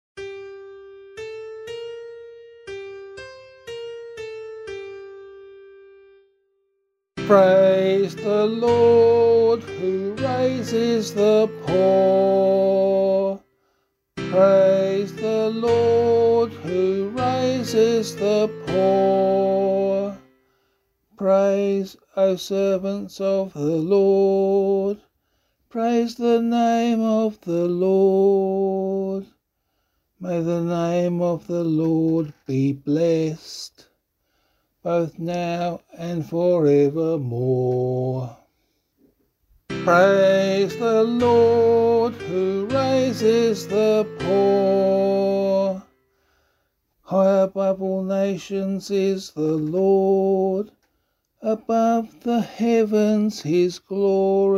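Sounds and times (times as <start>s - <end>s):
psalm in C sung by voice: 7.2s - 13.5s, 14.2s - 20.4s, 21.2s - 25.1s, 25.7s - 29.4s, 30.2s - 33.9s, 34.8s - 38.5s, 39.7s - 46.0s, 47.0s - 54.5s.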